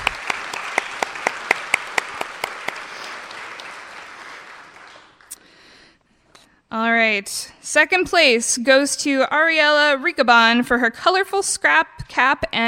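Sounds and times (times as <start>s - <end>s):
audience applause: 0.0s - 5.4s
speech: 7.0s - 12.6s.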